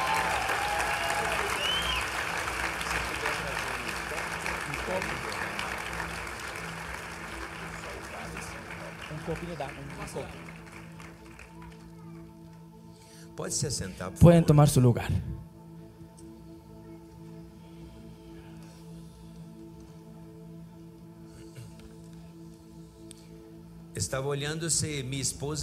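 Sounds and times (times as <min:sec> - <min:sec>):
audience applause: 0:00.0 - 0:12.3
speech: 0:09.3 - 0:10.6, 0:13.4 - 0:15.4, 0:24.1 - 0:25.6.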